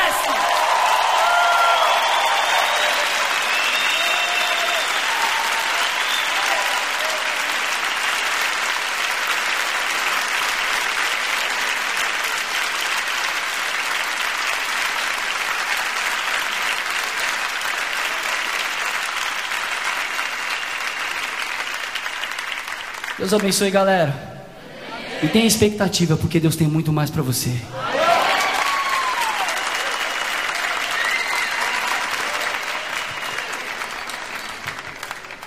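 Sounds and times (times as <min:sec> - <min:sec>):
audience applauding: 0:00.0 - 0:23.6, 0:27.8 - 0:35.4
speech: 0:23.3 - 0:24.3, 0:25.2 - 0:27.9.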